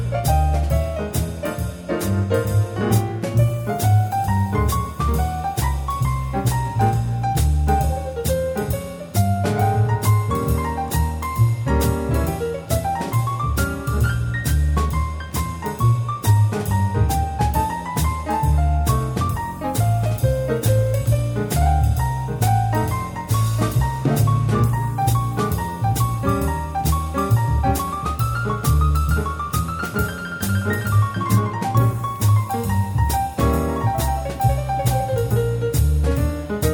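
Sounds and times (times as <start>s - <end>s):
jazz lounge trio playing: 0.0s - 36.7s.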